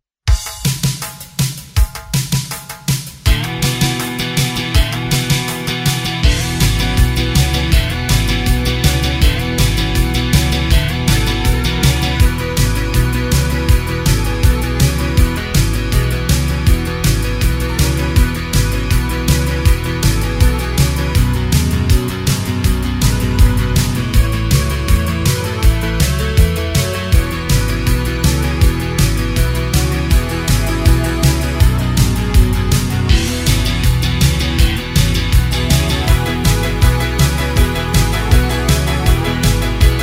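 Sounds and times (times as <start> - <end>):
instrumental music: 0.3 - 40.0.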